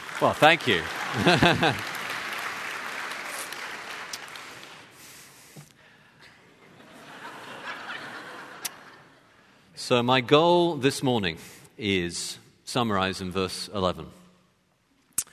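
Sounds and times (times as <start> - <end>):
audience applauding: 0.0 - 5.0
speech: 0.2 - 1.9, 9.9 - 14.2
laughter: 0.9 - 2.1, 6.4 - 9.3.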